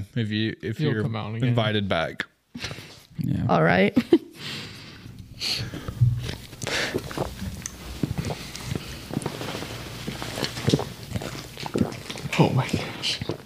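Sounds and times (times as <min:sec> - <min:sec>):
speech: 0:00.1 - 0:04.2, 0:05.4 - 0:05.9
person gulping down a drink: 0:05.0 - 0:13.4.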